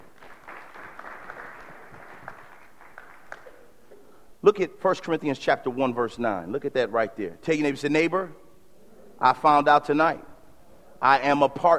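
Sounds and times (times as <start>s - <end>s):
audience clapping hands: 0.0s - 3.8s
speech: 4.4s - 8.4s, 9.2s - 10.3s, 11.0s - 11.7s.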